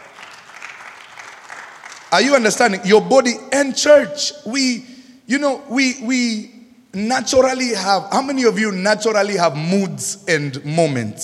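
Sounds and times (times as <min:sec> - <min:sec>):
audience clapping: 0:00.0 - 0:02.4
speech: 0:02.1 - 0:11.2.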